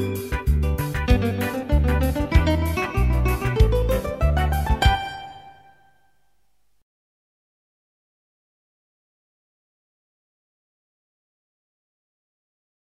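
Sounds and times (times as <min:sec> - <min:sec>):
recorder accompaniment: 0:00.0 - 0:06.0.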